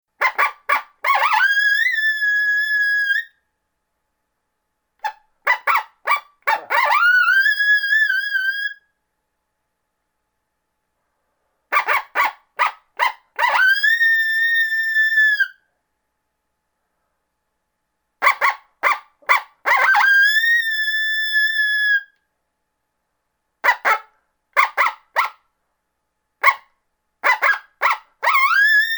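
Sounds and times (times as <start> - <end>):
coyote yipping and howling: 0.2 - 3.3, 5.0 - 8.8, 11.7 - 15.6, 18.2 - 22.1, 23.6 - 25.4, 26.4 - 28.9.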